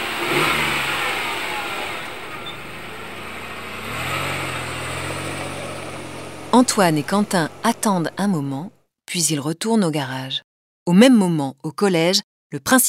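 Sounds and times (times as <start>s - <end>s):
van driving off: 0.0s - 8.3s
speech: 6.6s - 12.8s.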